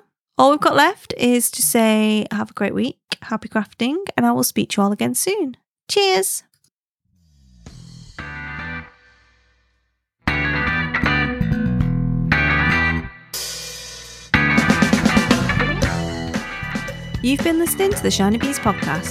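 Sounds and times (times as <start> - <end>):
speech: 0.4 - 6.5, 17.2 - 19.0
loud distorted rock music track: 7.6 - 9.4, 10.3 - 19.0.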